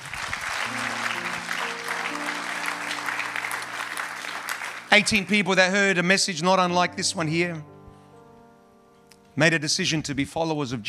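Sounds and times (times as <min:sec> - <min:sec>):
audience applauding: 0:00.0 - 0:05.8
speech: 0:04.9 - 0:07.7, 0:09.4 - 0:10.8.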